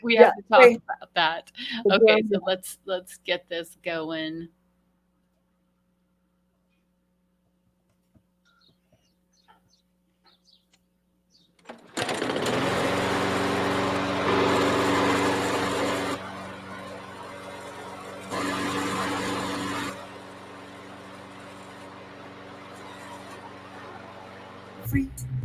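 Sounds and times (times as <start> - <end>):
speech: 0.0 - 4.6, 24.9 - 25.2
push lawnmower engine running: 11.6 - 24.9.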